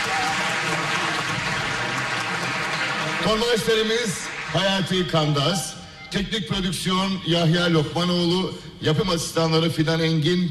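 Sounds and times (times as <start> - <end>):
applause for the choir: 0.0 - 5.0
speech: 3.2 - 10.4.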